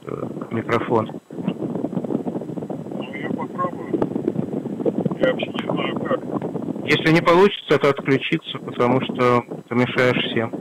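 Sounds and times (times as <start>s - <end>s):
speech: 0.0s - 1.2s, 5.2s - 10.5s
moving car rumble heard through a phone line: 0.0s - 7.4s.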